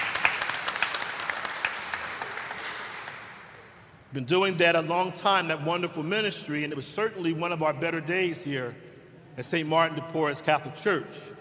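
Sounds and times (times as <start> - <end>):
audience round of applause: 0.0 - 3.9
speech: 4.1 - 8.8, 9.4 - 11.3.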